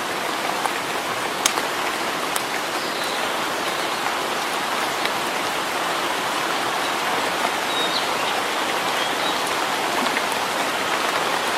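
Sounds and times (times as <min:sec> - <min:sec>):
rain in a forest in early summer: 0:00.0 - 0:11.5
faint bird chirp: 0:07.7 - 0:09.6.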